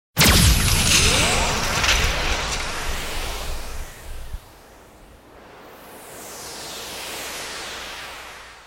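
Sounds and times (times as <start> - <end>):
digital shotgun shot: 0.2 - 4.5.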